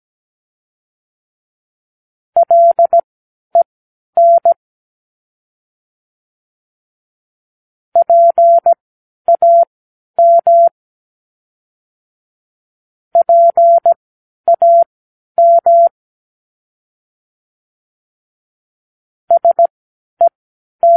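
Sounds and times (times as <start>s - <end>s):
morse code practice words: 2.4s - 3.0s, 4.2s - 4.6s, 8.0s - 10.7s, 13.2s - 15.9s, 19.3s - 19.7s.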